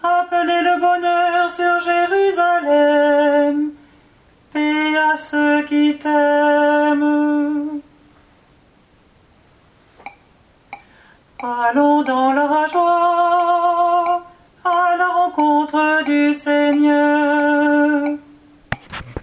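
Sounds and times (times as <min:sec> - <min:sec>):
alto singing a psalm: 0:00.0 - 0:03.8, 0:04.5 - 0:07.9, 0:11.4 - 0:18.5.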